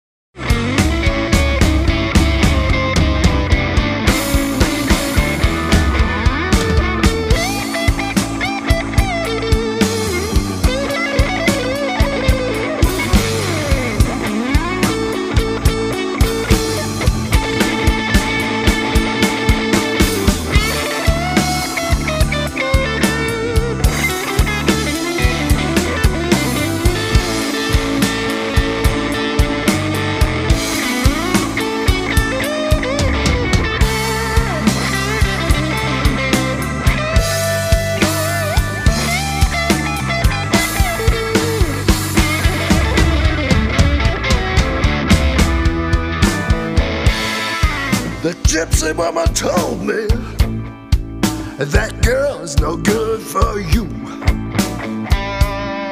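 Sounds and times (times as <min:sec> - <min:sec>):
blues music: 0:00.3 - 0:55.9.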